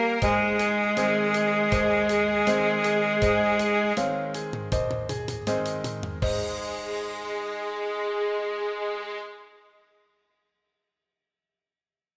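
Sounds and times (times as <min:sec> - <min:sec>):
F scale: 0:00.0 - 0:09.7.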